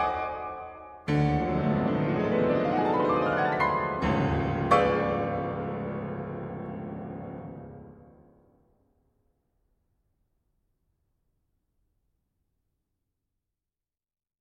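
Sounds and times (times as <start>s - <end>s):
piano: 0.0s - 8.8s.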